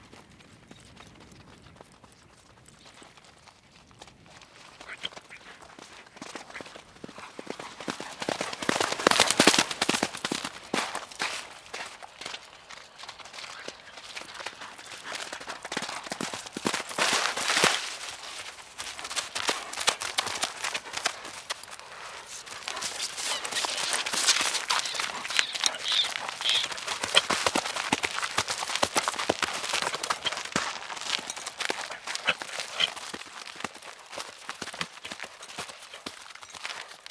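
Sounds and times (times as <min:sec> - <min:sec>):
horse trotting: 0:00.0 - 0:37.0
horse breathing: 0:04.1 - 0:37.0
stirrups jingling: 0:14.3 - 0:36.0.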